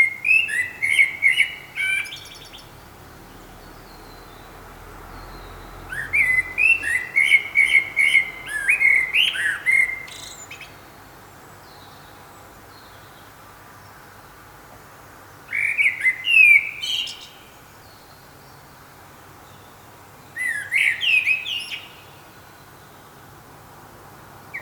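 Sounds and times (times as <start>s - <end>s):
Common blackbird singing: 0.0s - 10.9s, 15.5s - 18.6s, 19.5s - 23.0s.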